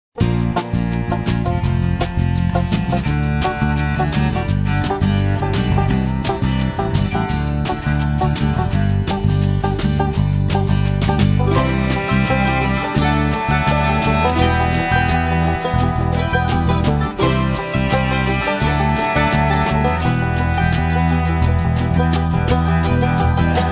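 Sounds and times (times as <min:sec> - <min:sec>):
bluegrass music: 0:00.2 - 0:23.7.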